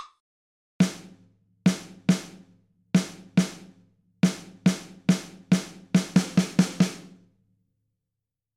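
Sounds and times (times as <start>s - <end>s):
rhythm dictation exercise: 0.8s - 7.3s.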